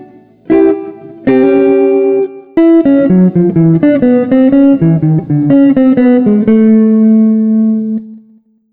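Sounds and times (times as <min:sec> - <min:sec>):
chill jazz street guitar playing: 0:00.0 - 0:08.2.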